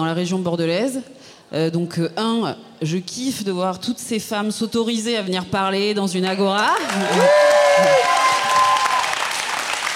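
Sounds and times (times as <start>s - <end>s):
speech: 0.0s - 8.2s
audience applause: 6.8s - 9.9s.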